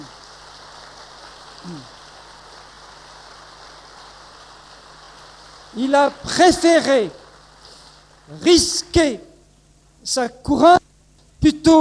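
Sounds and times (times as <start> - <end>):
audience applause: 0.0 - 8.4
speech: 1.6 - 2.0, 5.8 - 7.2, 8.3 - 9.3, 10.0 - 10.8, 11.6 - 11.8.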